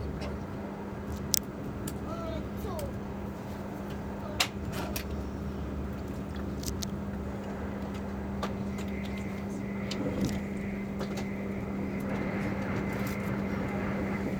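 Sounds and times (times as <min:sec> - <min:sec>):
train interior: 0:00.0 - 0:14.3.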